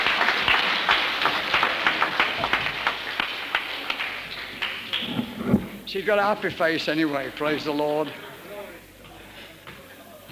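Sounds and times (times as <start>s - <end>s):
audience applause: 0.0s - 6.0s
speech: 6.0s - 8.2s.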